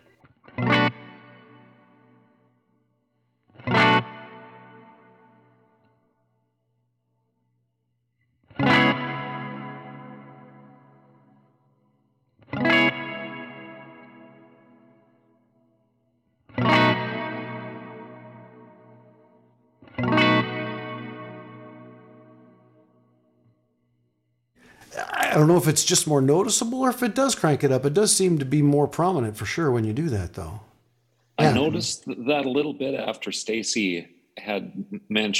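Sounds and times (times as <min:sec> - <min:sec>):
electric guitar strummed chords through an Earthquaker Dispatch Master modulated reverb pedal: 0:00.3 - 0:02.6, 0:03.5 - 0:05.9, 0:08.4 - 0:11.6, 0:12.4 - 0:15.4, 0:16.5 - 0:23.3
speech: 0:25.3 - 0:30.7, 0:31.6 - 0:35.3.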